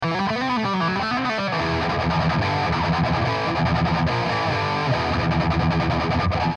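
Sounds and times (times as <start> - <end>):
guitar power chord: 0.0 - 6.5.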